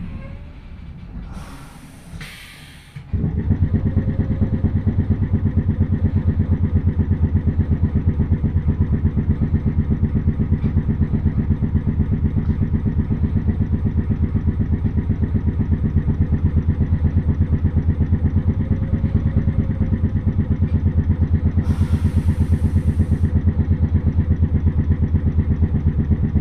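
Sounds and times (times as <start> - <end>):
clunks: 3.0 - 26.3
train with nose-suspended traction motors growling: 3.0 - 26.3
hissing bursts: 21.6 - 23.3.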